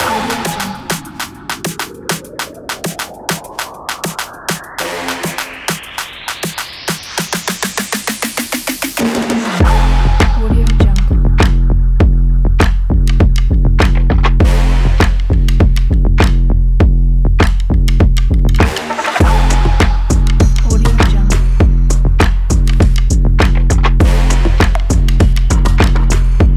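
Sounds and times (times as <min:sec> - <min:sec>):
techno music: 0:00.0 - 0:16.5, 0:17.4 - 0:26.5.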